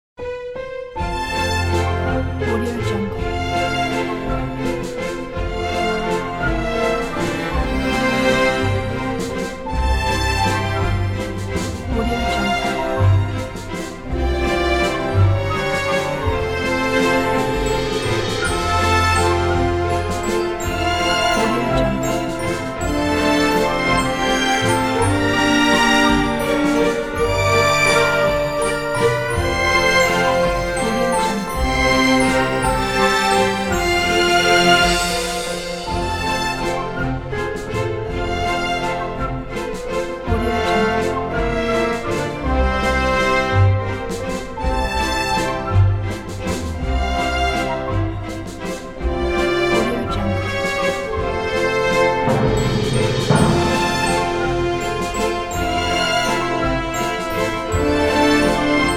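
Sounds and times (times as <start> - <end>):
royal classical dance music: 0.2 - 58.9.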